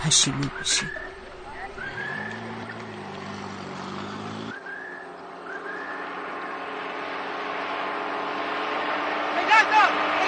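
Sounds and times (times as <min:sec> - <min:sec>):
minibus driving past a carpentry workshop: 0:00.0 - 0:10.2
speech: 0:00.1 - 0:01.1.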